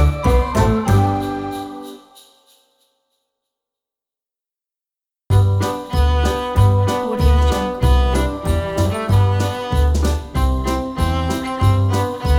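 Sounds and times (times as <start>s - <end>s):
cello playing a Christmas tune: 0.0s - 2.0s, 5.4s - 12.3s.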